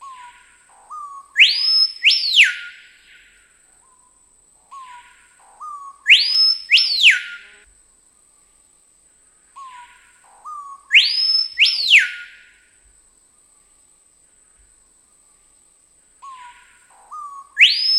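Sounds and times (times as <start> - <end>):
screaming piha song of loud piercing whistles: 0.0 - 7.7, 9.6 - 12.7, 16.2 - 17.9.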